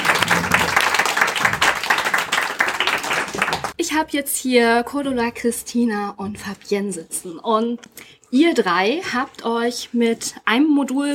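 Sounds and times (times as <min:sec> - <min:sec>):
applause: 0:00.0 - 0:03.8
speech: 0:03.9 - 0:11.1.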